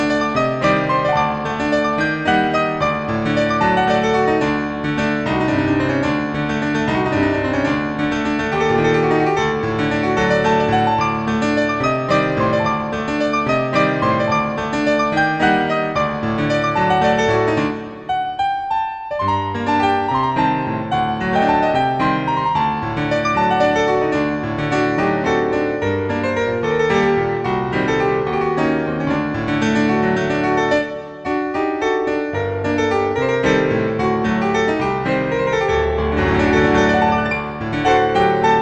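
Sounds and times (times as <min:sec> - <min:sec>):
piano: 0:00.0 - 0:38.6.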